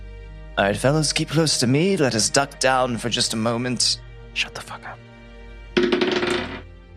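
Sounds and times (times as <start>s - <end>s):
speech: 0.6s - 5.1s
dice rattling across a hard surface: 5.8s - 6.6s.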